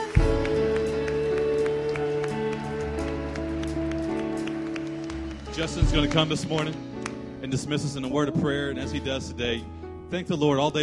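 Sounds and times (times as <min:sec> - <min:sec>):
audience hand clapping in praise: 0:00.0 - 0:07.4
sustained organ-like chords: 0:00.0 - 0:09.5
speech: 0:05.6 - 0:06.9, 0:07.5 - 0:10.8.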